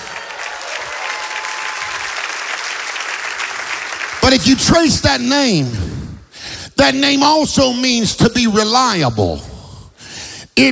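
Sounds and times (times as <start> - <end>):
audience applause: 0.0 - 4.9
speech: 4.3 - 5.9, 6.8 - 9.5, 10.6 - 10.7.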